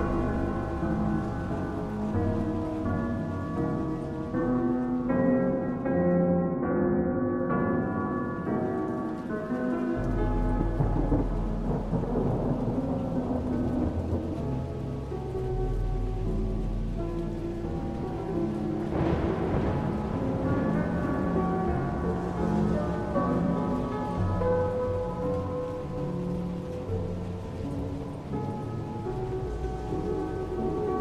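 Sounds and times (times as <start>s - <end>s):
thunder rumbling: 0.0s - 5.9s, 7.4s - 30.9s
steady dense rain: 0.0s - 30.9s.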